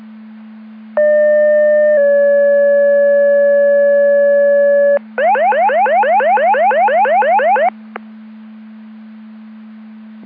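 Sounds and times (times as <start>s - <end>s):
siren: 1.0s - 7.8s.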